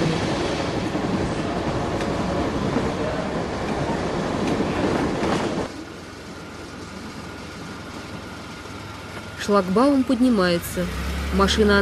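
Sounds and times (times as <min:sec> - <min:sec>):
military train rumbling past with clattering wagons: 0:00.0 - 0:11.8
speech: 0:09.5 - 0:11.8.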